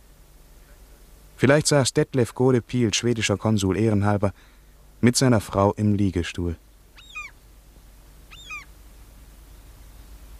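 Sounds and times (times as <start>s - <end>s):
speech: 1.4s - 6.7s
large flock of seagulls calling: 7.0s - 7.4s, 8.3s - 8.7s.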